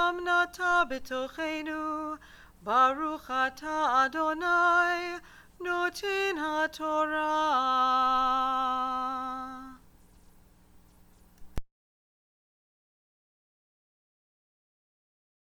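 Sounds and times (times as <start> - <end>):
Torah blessings recited: 0.0 - 9.8.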